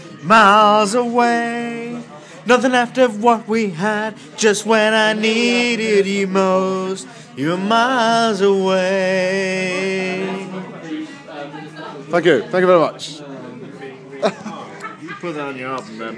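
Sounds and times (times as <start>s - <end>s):
people singing in a pub: 0.0s - 11.3s
laughter: 14.1s - 15.8s.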